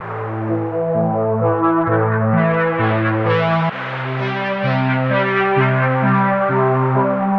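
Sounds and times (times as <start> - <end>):
synth sequence in A at 130: 0.0 - 7.3.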